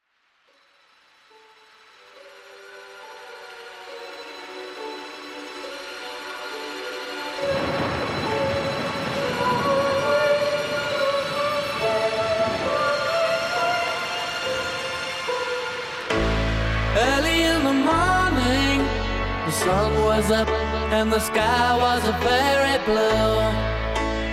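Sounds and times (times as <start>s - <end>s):
vocoder voice: 7.4s - 24.2s.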